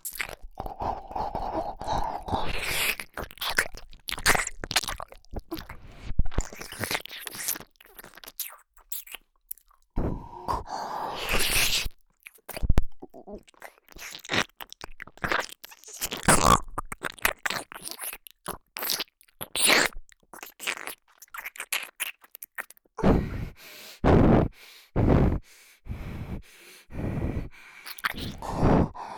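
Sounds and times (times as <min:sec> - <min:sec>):
nose breathing: 0:00.0 - 0:03.3, 0:10.0 - 0:11.9, 0:23.0 - 0:29.1
ear licking sounds: 0:00.0 - 0:23.0, 0:27.8 - 0:29.0.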